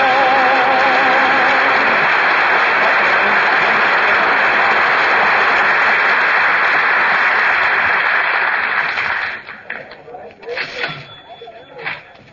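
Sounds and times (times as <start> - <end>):
crowd hubbub at Christmastime: 0.2 - 12.3.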